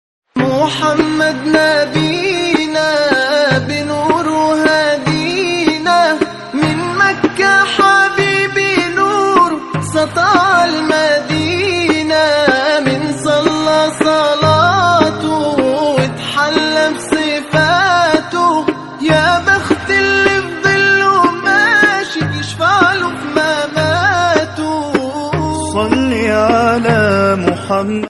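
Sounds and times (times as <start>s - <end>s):
Arabic nasheed and naat singing: 0.4s - 28.0s.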